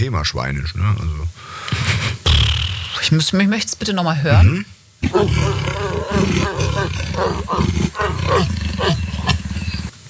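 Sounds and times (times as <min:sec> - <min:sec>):
speech: 0:00.0 - 0:02.2, 0:03.0 - 0:09.3
leopard growling: 0:05.0 - 0:10.0.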